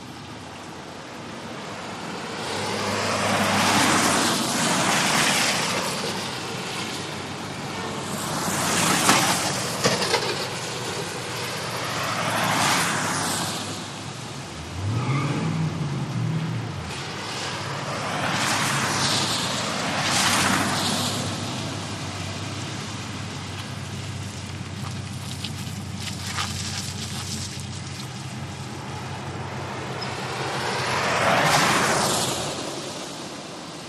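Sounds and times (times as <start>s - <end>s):
traffic on a wet street: 0.0s - 33.8s.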